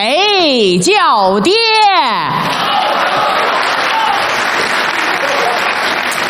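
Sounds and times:
speech: 0:00.0 - 0:02.6
audience applause: 0:02.4 - 0:06.2
cheers and shouts: 0:02.4 - 0:06.2.

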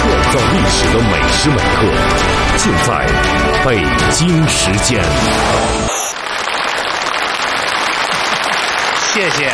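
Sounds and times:
speech: 0:00.6 - 0:06.4, 0:09.2 - 0:09.5
warm audience applause: 0:05.6 - 0:09.5.

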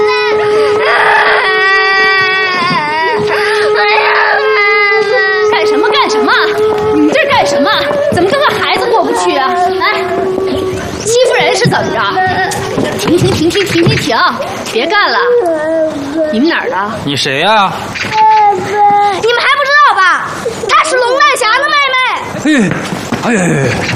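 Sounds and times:
low steady hum: 0:00.0 - 0:16.3
child crying and sobbing: 0:00.0 - 0:17.0, 0:18.2 - 0:22.6
adults talking: 0:00.0 - 0:23.9
speech: 0:14.1 - 0:15.3, 0:16.4 - 0:17.9, 0:22.4 - 0:23.9.

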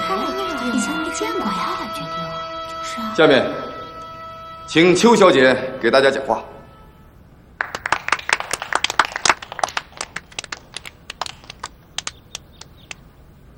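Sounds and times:
speech: 0:00.7 - 0:03.7, 0:04.7 - 0:06.5
scattered applause from workers: 0:07.6 - 0:13.0.

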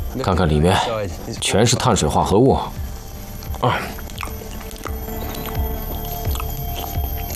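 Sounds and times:
steady noise: 0:00.0 - 0:07.3
speech: 0:00.1 - 0:02.8, 0:03.6 - 0:04.0
soft, wet chewing of nipa palm fruit: 0:02.8 - 0:07.3.

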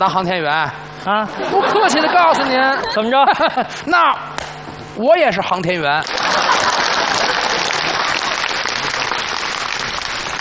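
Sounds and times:
speech: 0:00.0 - 0:04.4, 0:05.0 - 0:06.2
laughter: 0:01.3 - 0:03.9, 0:06.0 - 0:09.4
audience applause: 0:06.0 - 0:10.3.

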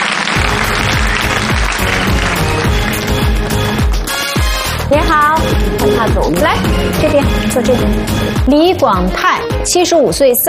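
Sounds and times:
audience applause: 0:00.0 - 0:08.4
pulsing bass beat of entrance music: 0:00.4 - 0:09.6
speech: 0:06.0 - 0:10.4.

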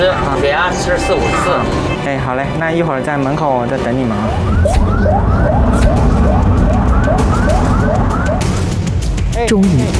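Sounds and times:
ambulance siren wailing: 0:00.0 - 0:02.0, 0:03.6 - 0:08.8
speech: 0:00.0 - 0:07.6, 0:09.4 - 0:09.9
engine and road rumble: 0:00.0 - 0:09.4.

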